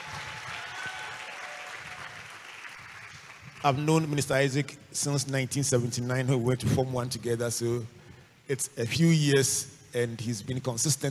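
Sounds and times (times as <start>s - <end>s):
church audience applause for a visiting song minister: 0.0s - 3.8s
speech: 3.6s - 11.0s.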